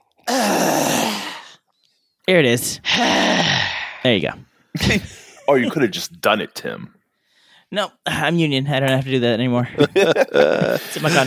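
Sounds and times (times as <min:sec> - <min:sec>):
exasperated groan sound effect: 0:00.2 - 0:01.6, 0:02.8 - 0:04.0, 0:10.1 - 0:11.0
speech: 0:02.3 - 0:03.3, 0:04.0 - 0:07.0, 0:07.7 - 0:11.2
laughter: 0:09.8 - 0:11.2.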